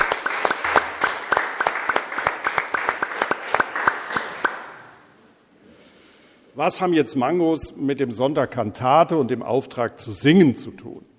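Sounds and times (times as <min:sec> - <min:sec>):
audience applause: 0:00.0 - 0:04.8
speech: 0:06.6 - 0:11.1.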